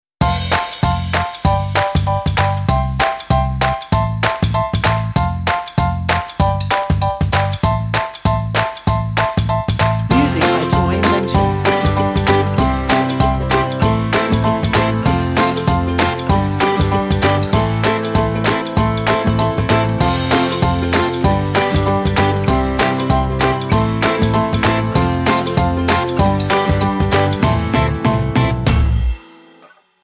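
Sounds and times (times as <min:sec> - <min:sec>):
feel-good background music: 0:00.2 - 0:29.6.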